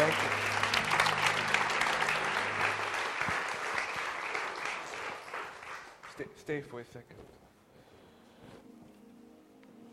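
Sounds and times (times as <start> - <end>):
audience applause welcoming a guest: 0.0 - 6.4
speech: 6.5 - 7.4.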